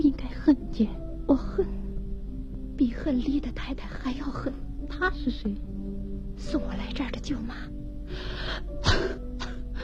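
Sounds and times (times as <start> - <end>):
speech: 0.0 - 1.4, 3.1 - 9.1
coughing: 8.8 - 9.7.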